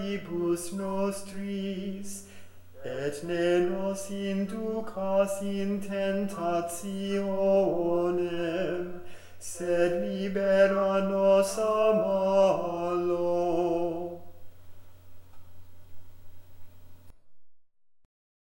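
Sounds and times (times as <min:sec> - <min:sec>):
Gregorian chant: 0:00.0 - 0:14.4.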